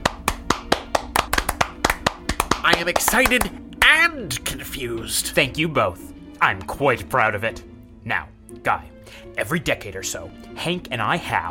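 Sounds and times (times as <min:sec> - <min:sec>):
hand claps: 0:00.0 - 0:04.0
speech: 0:02.6 - 0:11.4.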